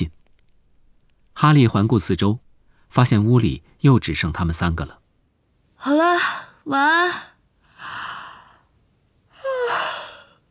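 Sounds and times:
speech: 0:01.4 - 0:05.0, 0:05.8 - 0:08.0
big yawn: 0:09.4 - 0:10.3.

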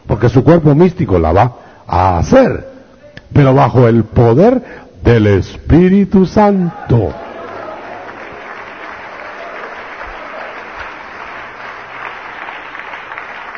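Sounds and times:
speech: 0:00.2 - 0:02.7, 0:03.3 - 0:07.2
church congregation applauding during a sermon: 0:07.1 - 0:13.5.

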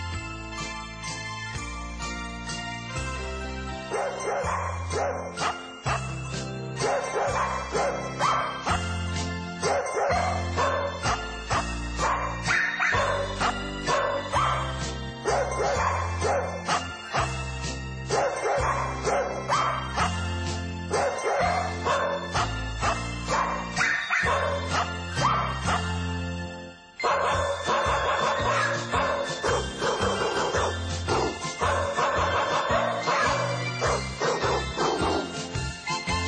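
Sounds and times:
backing music from a record: 0:00.0 - 0:36.2
little dogs barking a birthday tune on a record: 0:03.9 - 0:06.2, 0:06.8 - 0:09.0, 0:09.6 - 0:17.4, 0:18.0 - 0:26.0, 0:27.0 - 0:35.4.

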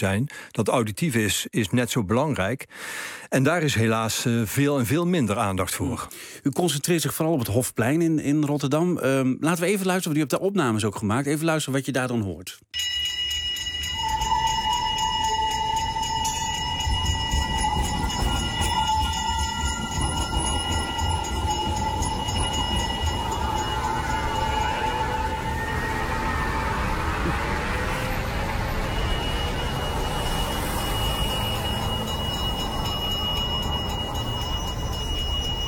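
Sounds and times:
speech: 0:00.0 - 0:13.1
tram wheels and bells: 0:12.8 - 0:35.6
busy city square traffic: 0:13.8 - 0:35.6.

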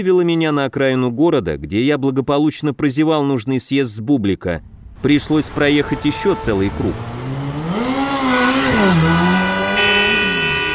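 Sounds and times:
speech: 0:00.0 - 0:07.2
motorcycle engine revving: 0:04.6 - 0:10.7
other vehicles' horns honking: 0:05.4 - 0:10.7.

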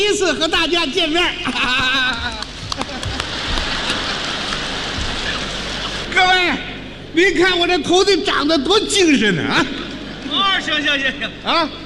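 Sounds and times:
speech: 0:00.2 - 0:02.5, 0:06.2 - 0:11.8
laughter: 0:01.3 - 0:06.1, 0:09.4 - 0:11.4
audience applause: 0:01.8 - 0:06.0.

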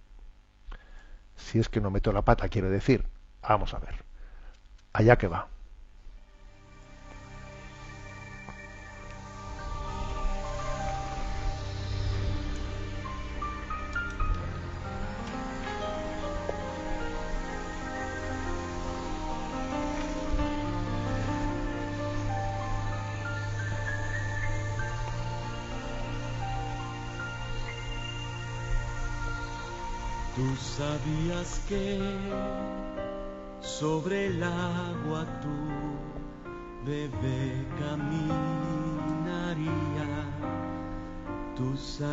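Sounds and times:
speech: 0:01.5 - 0:04.1, 0:04.9 - 0:05.5, 0:30.6 - 0:32.6, 0:33.8 - 0:35.8, 0:36.8 - 0:40.2, 0:41.6 - 0:42.1
song playing: 0:06.3 - 0:42.1.

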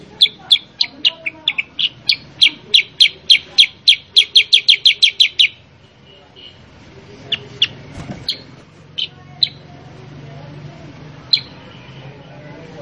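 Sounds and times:
Sooty-headed bulbul calls: 0:00.0 - 0:06.6, 0:07.2 - 0:09.7, 0:11.3 - 0:11.9.

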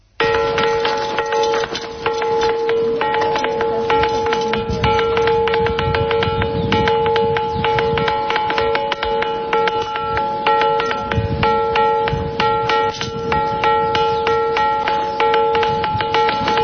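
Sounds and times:
phonolite ringing stones being struck: 0:00.2 - 0:16.6.

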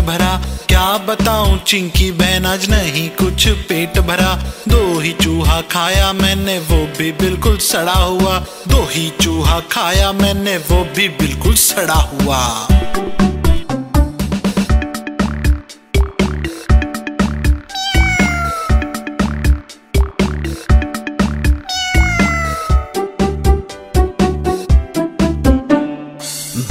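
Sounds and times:
steady punchy musical beat with looping backing track: 0:00.0 - 0:26.7
speech: 0:00.1 - 0:13.2
cat meows over a musical beat: 0:17.6 - 0:19.0, 0:21.6 - 0:23.0.

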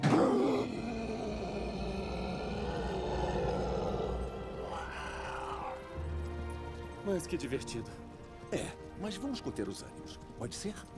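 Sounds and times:
excited growl: 0:00.0 - 0:06.0
speech: 0:07.1 - 0:10.9.

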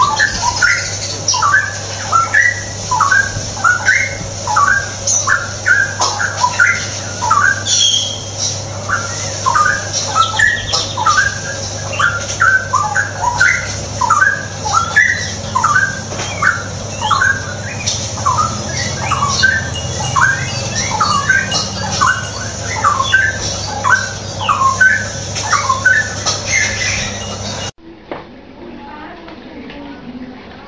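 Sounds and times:
Straw-headed bulbul singing: 0:00.0 - 0:27.7
constant low electrical hum: 0:00.0 - 0:30.6
faint high chatter: 0:00.0 - 0:30.6.

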